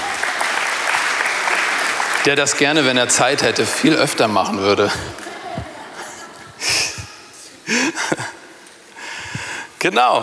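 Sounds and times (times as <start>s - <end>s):
audience applause: 0.0s - 6.9s
speech: 2.2s - 5.2s, 9.8s - 10.2s
laughter: 2.8s - 8.6s.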